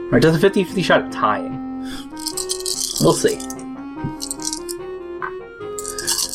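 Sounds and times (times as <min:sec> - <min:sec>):
speech: 0:00.1 - 0:02.4, 0:03.0 - 0:03.5
rolling dice clattering and rattling: 0:02.0 - 0:04.8, 0:05.8 - 0:06.3.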